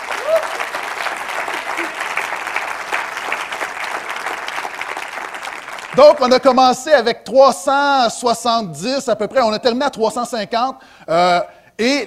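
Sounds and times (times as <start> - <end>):
audience applause: 0.0 - 6.4
speech: 6.0 - 12.0.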